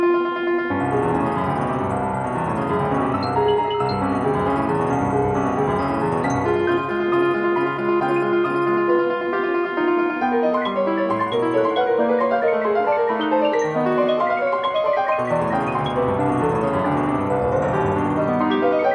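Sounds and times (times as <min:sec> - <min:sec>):
digital piano: 0:00.7 - 0:18.9.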